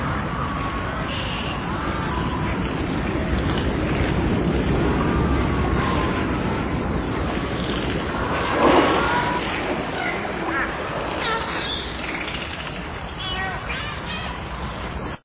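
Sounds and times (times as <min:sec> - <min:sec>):
dolphin in the sea off Sakhalin and the Kuril Islands: 0:00.0 - 0:15.0.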